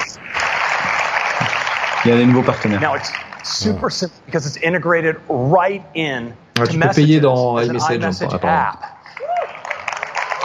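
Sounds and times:
audience applause: 0.2s - 3.6s, 9.1s - 10.4s
speech: 2.0s - 9.2s.

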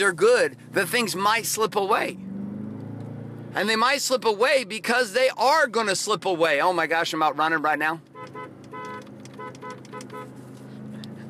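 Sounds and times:
speech: 0.0s - 2.3s, 3.6s - 8.1s
car horn honking: 8.1s - 10.4s.

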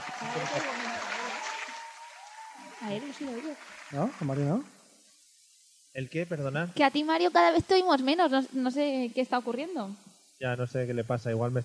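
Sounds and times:
applause: 0.0s - 4.6s
speech: 0.4s - 0.8s, 2.8s - 4.8s, 6.0s - 11.6s.

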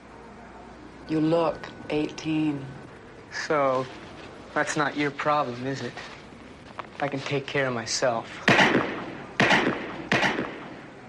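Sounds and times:
speech: 1.1s - 6.2s, 7.0s - 9.0s
pistol gunshots from guards on a firing range: 8.5s - 10.9s.

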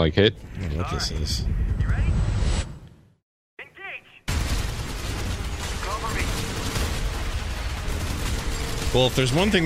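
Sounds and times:
speech: 0.0s - 2.3s, 8.9s - 9.6s
gunfire in a VR first-person shooter video game: 4.3s - 9.6s.

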